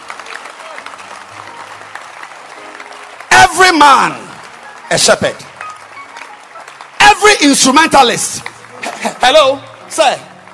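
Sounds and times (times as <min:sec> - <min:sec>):
audience clapping hands: 0:00.0 - 0:10.5
speech: 0:03.5 - 0:04.2, 0:04.9 - 0:05.5, 0:07.4 - 0:10.3.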